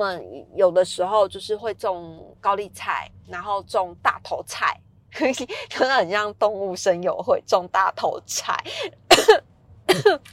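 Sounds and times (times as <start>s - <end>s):
speech: 0.0s - 10.3s
person coughing after choking on saliva: 9.1s - 10.3s.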